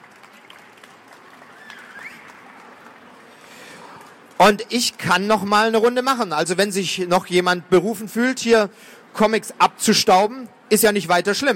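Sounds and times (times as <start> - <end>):
audience applause: 0.0 - 4.2
whistle: 1.6 - 2.4
speech: 4.4 - 11.5.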